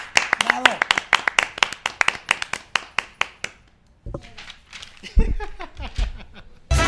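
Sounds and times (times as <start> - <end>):
applause, hands clapping: 0.0 - 3.8
laughter: 5.0 - 6.7.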